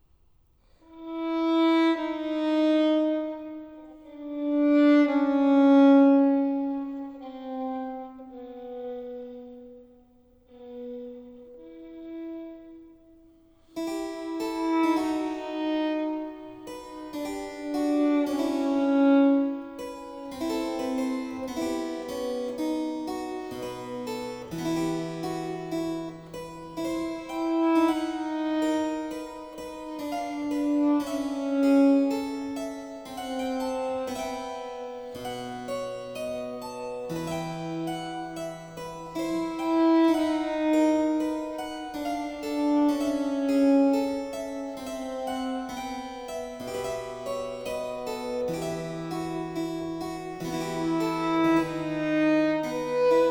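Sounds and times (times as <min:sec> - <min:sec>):
slow violin sonata movement: 0:00.8 - 0:53.3.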